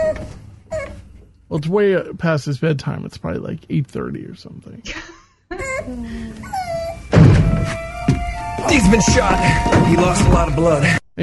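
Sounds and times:
speech: 1.5 - 6.6, 8.6 - 11.2
door being kicked open: 7.1 - 8.3.

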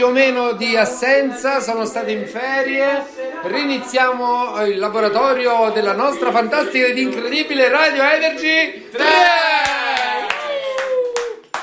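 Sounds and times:
speech: 0.0 - 9.6
applause: 9.6 - 11.6.

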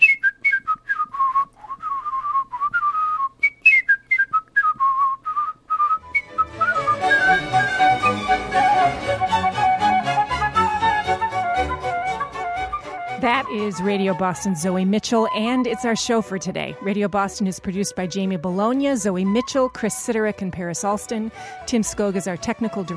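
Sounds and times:
whistled rendition of a baroque flute melody: 0.0 - 16.4, 18.2 - 20.3
fuller instrumental accompaniment: 6.0 - 19.7
speech: 13.5 - 22.9.

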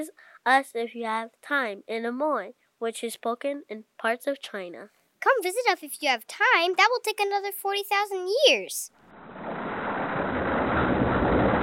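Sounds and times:
speech: 0.0 - 9.0
thunder: 9.1 - 11.6
volcanoes: 9.1 - 11.6.

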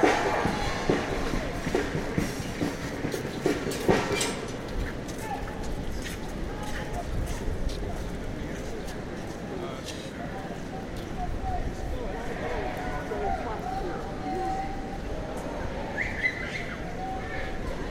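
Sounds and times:
murmur of many voices in Washington Square Park in New York: 0.0 - 17.8.

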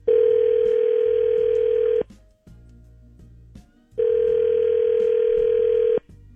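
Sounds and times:
telephone ringback tone on an unanswered call: 0.1 - 2.1, 4.0 - 6.1.

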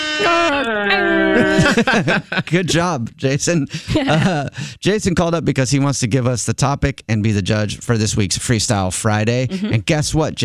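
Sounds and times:
voice imitating an air horn: 0.0 - 1.6
speech: 0.2 - 10.4
laughter: 0.3 - 3.0, 3.6 - 4.6, 9.5 - 9.8.

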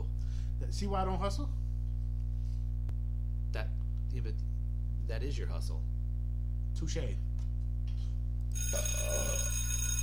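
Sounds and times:
low steady hum: 0.0 - 10.0
speech: 0.6 - 1.6, 3.6 - 6.0, 6.8 - 7.3, 8.6 - 9.5
bell ringing: 8.6 - 10.0.

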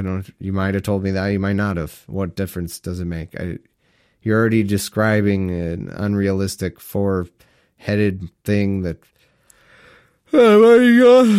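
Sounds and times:
speech: 0.0 - 9.1, 10.3 - 11.3
person yawning: 10.3 - 11.3.

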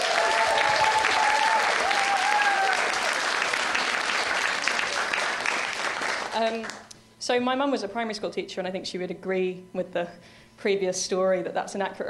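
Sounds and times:
faint whoops: 0.0 - 3.1
audience applause: 0.0 - 6.8
speech: 6.4 - 12.0.

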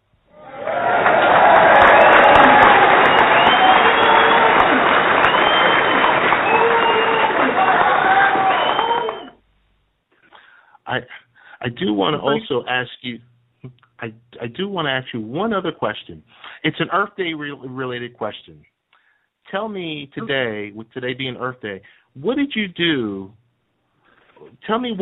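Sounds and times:
cheers: 0.3 - 9.4
round of applause: 0.4 - 9.4
speech: 11.7 - 18.7, 19.5 - 23.4, 24.4 - 25.0.

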